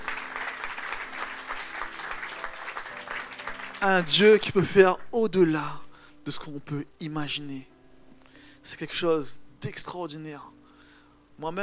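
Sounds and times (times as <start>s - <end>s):
audience applauding: 0.0s - 4.6s
speech: 3.8s - 7.7s, 8.6s - 10.6s, 11.4s - 11.6s.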